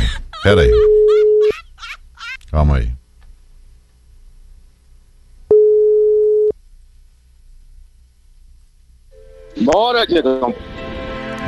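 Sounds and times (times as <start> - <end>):
faint low hum: 0.0 - 10.6
speech: 0.4 - 0.9, 2.5 - 3.0, 9.6 - 10.7
telephone busy signal: 5.5 - 6.6.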